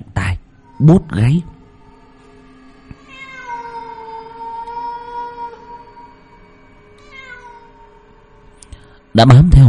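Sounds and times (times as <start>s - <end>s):
cat yowling at night: 0.6s - 2.2s, 2.9s - 8.3s
speech: 0.8s - 1.5s, 9.2s - 9.6s.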